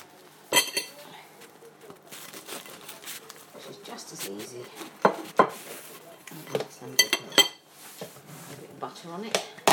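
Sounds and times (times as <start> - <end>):
knife cutting a tea cake in half: 0.5 - 1.0
speech: 4.0 - 5.4, 8.8 - 9.6.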